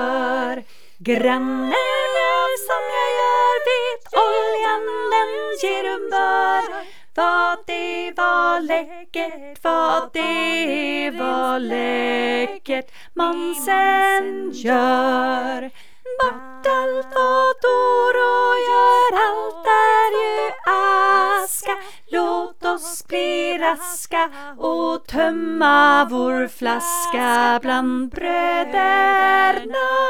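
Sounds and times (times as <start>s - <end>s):
bass voices of a senior choir: 0.0s - 30.0s.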